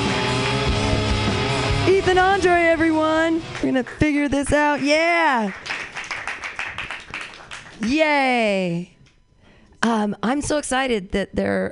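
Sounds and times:
audience clapping: 0.0s - 1.9s, 3.4s - 8.2s
speech: 2.1s - 5.7s, 7.8s - 8.9s, 9.8s - 11.7s.

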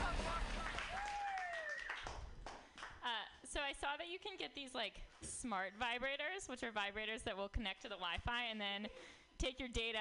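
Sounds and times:
audience whooping: 0.0s - 2.1s
audience applause welcoming a female stand-up comedian: 0.0s - 3.0s
speech: 3.5s - 10.0s.

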